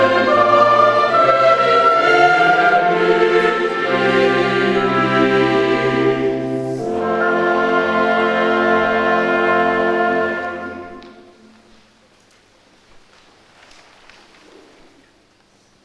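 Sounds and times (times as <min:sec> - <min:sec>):
choir singing: 0:00.0 - 0:11.8.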